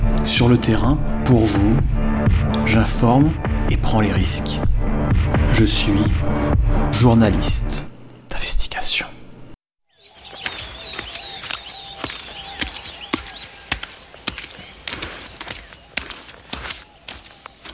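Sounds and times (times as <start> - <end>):
speech: 0.3 - 4.7, 5.5 - 6.3, 6.9 - 9.1
footsteps walking through mud: 10.0 - 17.7.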